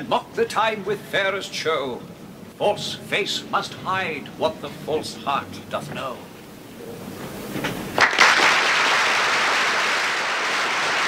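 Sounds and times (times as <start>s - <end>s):
speech: 0.0s - 6.3s
theatre audience applauding: 8.0s - 11.0s.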